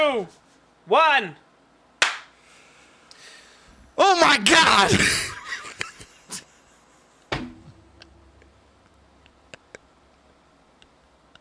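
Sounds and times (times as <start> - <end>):
speech: 0.1 - 1.4, 4.0 - 5.3
hand clap for audio sync: 2.0 - 2.4
laughter: 4.6 - 7.0.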